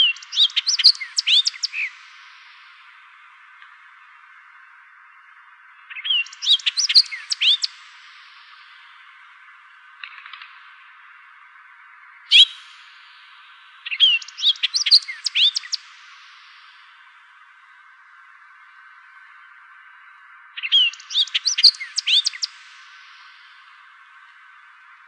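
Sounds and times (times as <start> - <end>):
Hooded oriole calling: 0.0 - 2.1, 5.9 - 7.8, 12.3 - 12.6, 13.8 - 15.9, 20.6 - 23.1.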